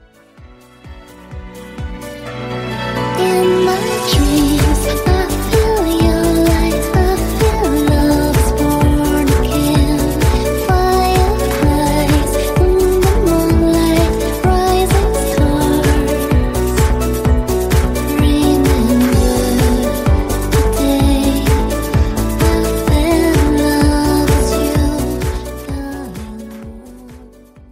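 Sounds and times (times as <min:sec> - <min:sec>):
dance music: 0:00.0 - 0:27.7.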